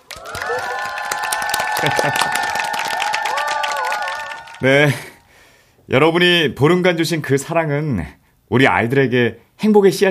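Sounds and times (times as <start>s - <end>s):
group applause: 0.0s - 5.3s
laughter: 1.6s - 2.8s, 4.5s - 5.2s
speech: 1.8s - 2.4s, 4.6s - 5.1s, 5.9s - 10.0s.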